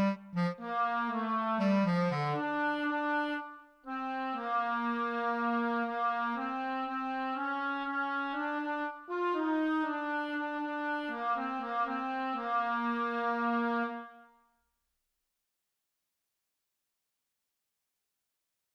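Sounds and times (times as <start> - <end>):
woodwind instrument: 0.0 - 14.6.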